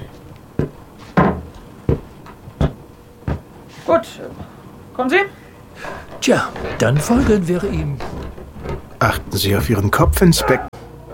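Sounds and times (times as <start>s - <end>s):
speech: 3.9s - 10.7s
door opening: 5.8s - 10.7s.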